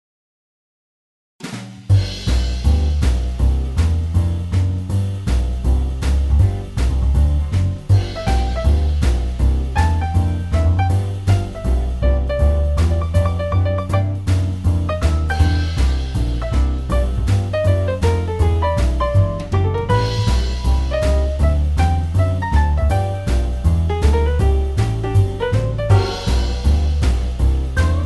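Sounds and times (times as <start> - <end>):
blues music: 1.9 - 28.0.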